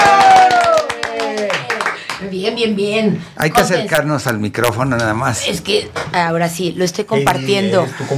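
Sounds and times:
rhythmic clapping welcoming a guest singer: 0:00.0 - 0:02.3
speech: 0:02.5 - 0:08.1.

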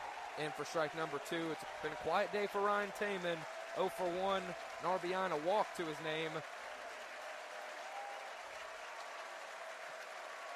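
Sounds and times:
stadium crowd cheering and clapping: 0:00.0 - 0:10.5
speech: 0:00.4 - 0:06.6.

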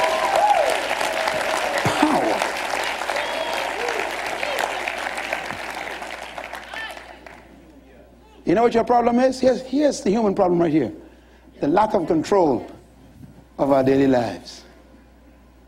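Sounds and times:
audience clapping hands: 0:00.0 - 0:07.6
speech: 0:08.5 - 0:11.0, 0:11.6 - 0:12.7, 0:13.6 - 0:14.6.

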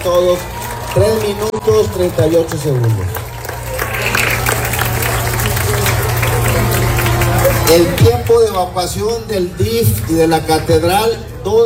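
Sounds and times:
speech: 0:00.0 - 0:03.3, 0:07.7 - 0:11.6
audience applause: 0:00.0 - 0:08.4.

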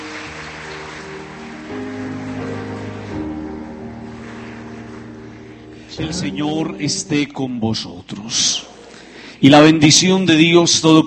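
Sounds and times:
audience applauding: 0:00.0 - 0:07.4
sustained low musical tones: 0:00.0 - 0:08.9
speech: 0:06.0 - 0:08.7, 0:09.4 - 0:11.0.

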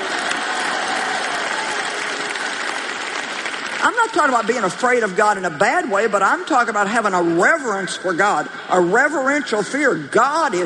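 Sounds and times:
audience applause: 0:00.0 - 0:04.8
speech: 0:03.8 - 0:10.6.

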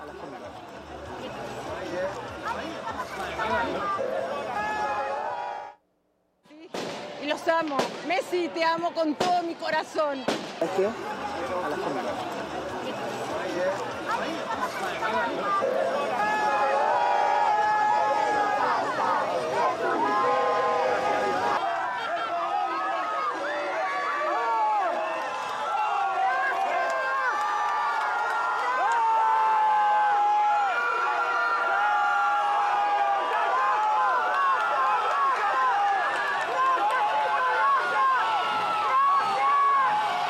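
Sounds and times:
crowd shouting thanks to arriving team: 0:01.9 - 0:05.8, 0:13.3 - 0:40.2
speech: 0:07.4 - 0:12.4.

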